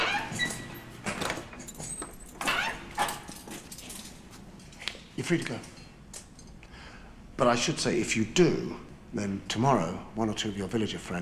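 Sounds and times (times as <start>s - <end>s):
jail gate being unlocked and swung open: 0.0s - 4.2s
keys jangling: 0.3s - 5.0s, 5.6s - 6.7s
speech: 5.2s - 5.8s, 7.4s - 11.2s.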